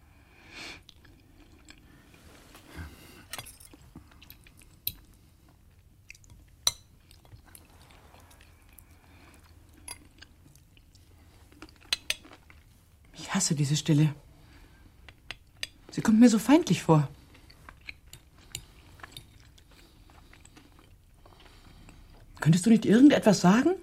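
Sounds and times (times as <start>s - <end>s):
faint chewing: 0.7s - 13.2s, 16.7s - 22.5s
speech: 13.4s - 14.2s, 16.1s - 17.2s, 22.5s - 23.8s.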